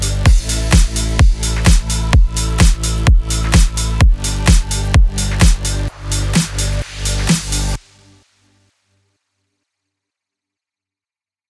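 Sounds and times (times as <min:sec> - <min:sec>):
electro music bed in F minor at 128 BPM: 0:00.0 - 0:08.2.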